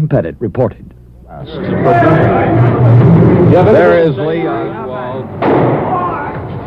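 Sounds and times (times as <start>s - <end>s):
speech: 0.0s - 5.8s
agitated roar with voices: 1.4s - 4.1s
gunshot as Jack Ruby shoots Lee Oswald at Dallas Police Headquarters: 5.4s - 6.1s.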